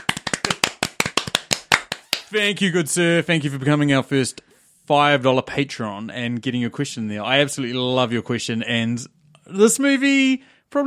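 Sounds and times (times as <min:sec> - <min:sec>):
sharp crisp hand claps: 0:00.0 - 0:02.4
speech: 0:02.3 - 0:10.8.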